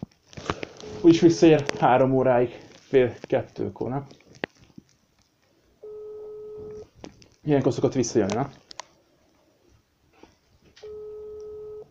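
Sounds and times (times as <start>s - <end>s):
telephone ringing: 0.8s - 1.8s, 5.8s - 6.9s, 10.8s - 11.9s
speech: 1.0s - 4.2s, 7.4s - 8.6s.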